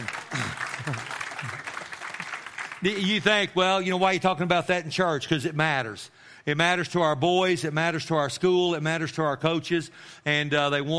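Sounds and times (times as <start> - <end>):
audience clapping: 0.0 - 3.5
speech: 2.8 - 10.9.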